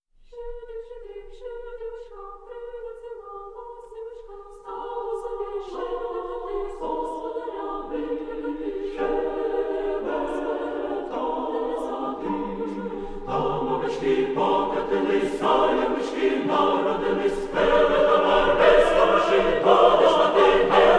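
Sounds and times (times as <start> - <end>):
carol music: 4.7 - 20.9.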